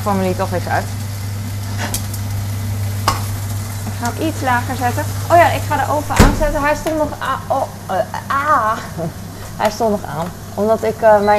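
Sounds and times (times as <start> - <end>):
speech: 0.0 - 1.0, 4.0 - 11.3
shrimp sizzling in pan: 0.0 - 11.3
tongs tossing shrimp in pan: 0.6 - 6.0
laughter: 8.8 - 9.2.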